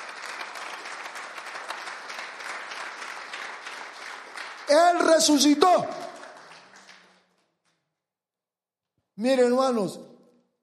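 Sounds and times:
audience applause: 0.0 - 7.6
speech: 4.7 - 6.0, 9.2 - 10.1.

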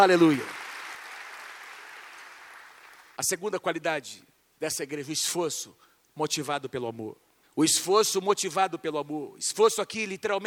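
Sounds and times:
speech: 0.0 - 0.6, 3.2 - 10.4
audience applauding loudly: 0.0 - 3.2.

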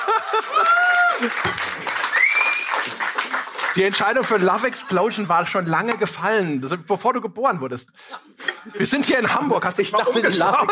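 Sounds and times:
laughter: 0.0 - 1.4, 8.4 - 10.7
applause: 0.0 - 5.0
speech: 1.2 - 1.7, 3.8 - 10.7.

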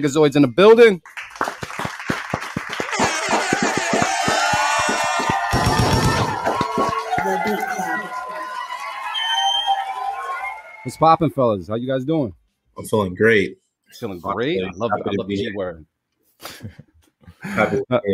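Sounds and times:
speech: 0.0 - 1.2, 10.8 - 18.1
people clapping: 1.0 - 10.9
laughter: 2.8 - 5.5, 6.3 - 8.2, 14.3 - 15.6, 17.4 - 18.1.

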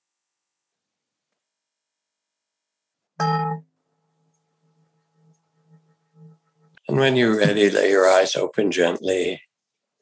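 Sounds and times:
meditation bell over Zoom: 3.2 - 6.9
speech: 7.0 - 9.5.

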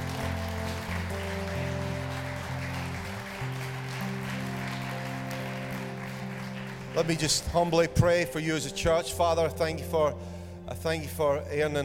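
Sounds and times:
church audience applause: 0.0 - 7.9
speech: 7.0 - 11.8.

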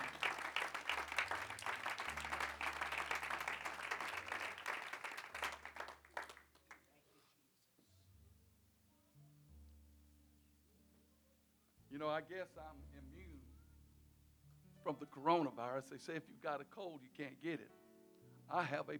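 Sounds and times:
congregation clapping hands in a church service: 0.0 - 6.9
speech: 12.0 - 13.5, 14.8 - 17.8, 18.5 - 18.9.

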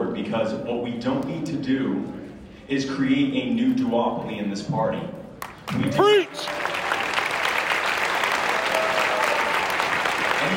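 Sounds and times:
speech: 0.2 - 6.6
audience applause: 5.7 - 10.5.

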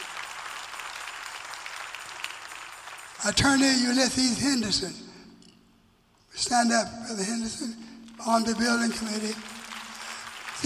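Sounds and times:
audience round of applause: 0.0 - 3.4, 8.4 - 10.6
speech: 3.2 - 5.0, 6.4 - 9.6.

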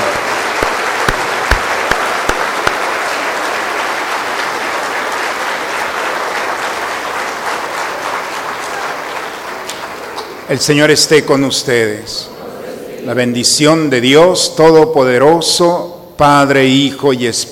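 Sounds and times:
audience applauding: 0.0 - 10.8
speech: 10.5 - 12.3, 13.0 - 17.5.

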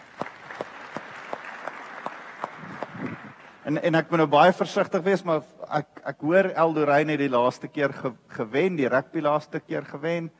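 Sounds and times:
audience hand clapping: 0.0 - 3.6
speech: 3.7 - 10.3.

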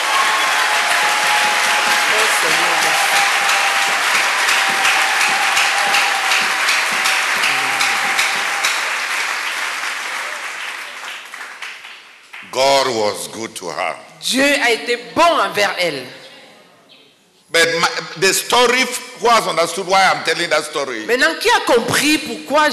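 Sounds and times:
congregation applauding and cheering at a Christian conference: 0.0 - 13.0
speech: 12.9 - 16.2, 17.7 - 22.7.

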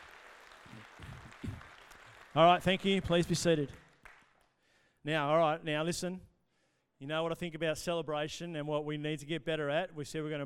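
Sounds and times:
audience applause: 0.0 - 4.3
speech: 2.4 - 3.8, 5.0 - 6.3, 7.0 - 10.4.

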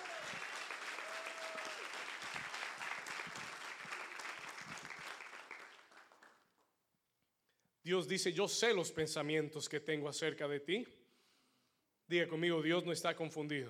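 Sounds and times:
audience applauding: 0.0 - 6.5
speech: 7.9 - 11.0, 12.1 - 13.6.

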